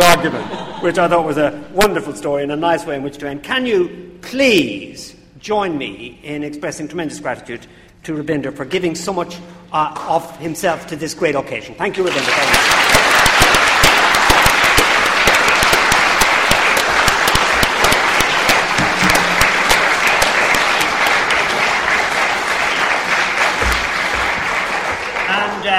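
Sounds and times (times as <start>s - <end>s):
laughter: 0.1s - 1.3s
speech: 0.2s - 13.1s
round of applause: 11.9s - 25.7s.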